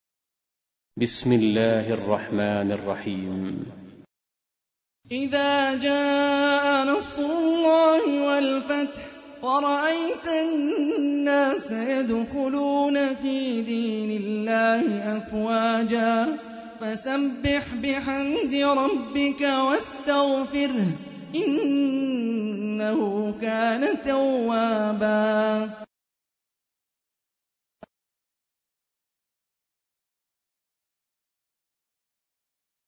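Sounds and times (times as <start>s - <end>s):
Quran recitation: 1.0s - 3.8s, 5.1s - 25.9s.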